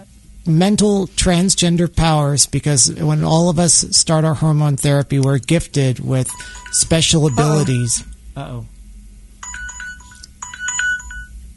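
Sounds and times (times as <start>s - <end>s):
speech: 0.4s - 8.7s
kitchen timer alarm going off: 6.3s - 8.1s, 9.4s - 11.4s.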